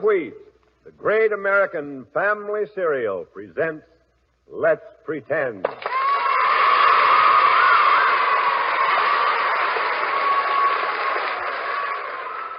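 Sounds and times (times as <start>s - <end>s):
speech: 0.0s - 3.9s, 4.5s - 5.9s
studio audience applause at a show's opening: 5.7s - 12.5s.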